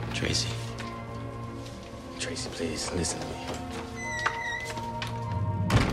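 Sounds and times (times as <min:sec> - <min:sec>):
speech: 0:00.1 - 0:00.7, 0:02.2 - 0:03.9
front door shutting: 0:03.6 - 0:05.9.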